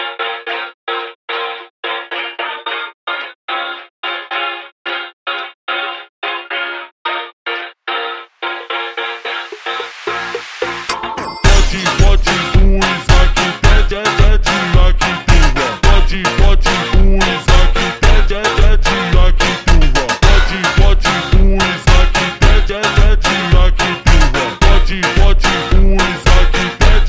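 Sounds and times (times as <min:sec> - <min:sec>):
slowed Christmas kids funk music: 0:08.7 - 0:27.0.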